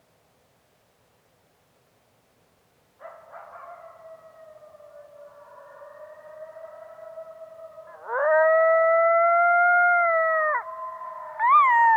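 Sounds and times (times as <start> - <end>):
coyotes yipping and howling in a group chorus in Yellowstone: 3.9 - 11.9.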